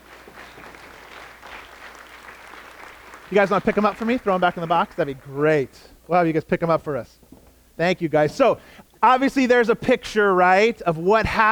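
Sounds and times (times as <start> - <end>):
audience applause: 0.0 - 5.7
speech: 3.3 - 7.2, 7.8 - 11.4.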